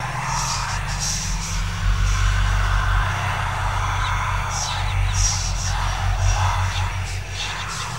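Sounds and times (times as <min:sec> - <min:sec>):
demonic whisper: 0:00.0 - 0:07.9.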